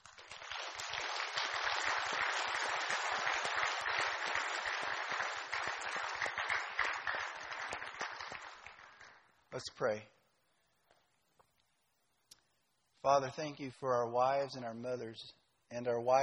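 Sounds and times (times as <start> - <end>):
audience round of applause: 0.0 - 9.3
speech: 9.6 - 10.2, 13.0 - 16.2.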